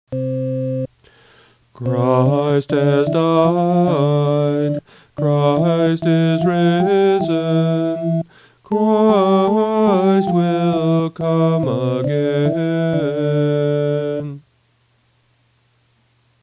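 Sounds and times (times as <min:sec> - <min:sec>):
English chant: 0:01.8 - 0:14.4.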